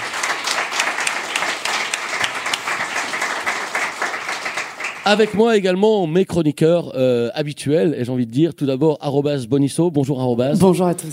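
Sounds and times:
studio audience applause: 0.0 - 5.5
speech: 5.0 - 11.1.

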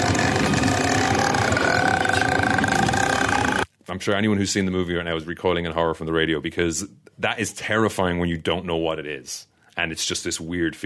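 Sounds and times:
voice imitating a ghost's crackling throat noise: 0.0 - 3.6
speech: 4.0 - 10.8.

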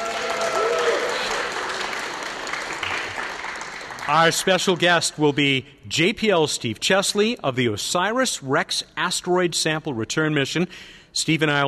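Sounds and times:
audience of amateur astronomers applauding at the Pacific Astronomy and Telescope Show, Pasadena: 0.0 - 4.8
speech: 4.1 - 11.6.

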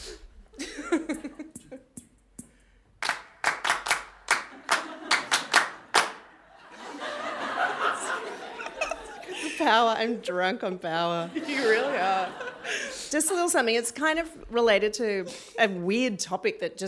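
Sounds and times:
laughter: 0.6 - 1.9, 4.5 - 10.2, 10.9 - 13.8
audience clapping: 3.0 - 6.4
speech: 9.7 - 16.8.

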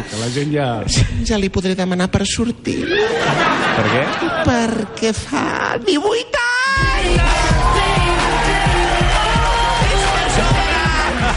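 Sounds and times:
speech: 0.2 - 7.9
laughter: 2.8 - 5.0, 9.9 - 11.3
audience applauding: 7.0 - 11.3.

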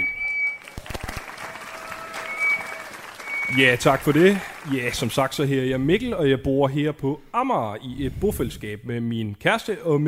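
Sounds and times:
high whistle-like tone: 0.0 - 0.7, 2.1 - 3.7
audience applause: 0.4 - 5.6
speech: 3.5 - 10.0.

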